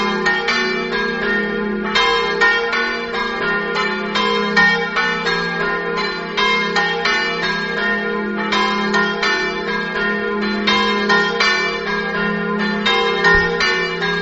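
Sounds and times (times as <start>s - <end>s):
bells ringing in Pignano: 0.0s - 14.2s.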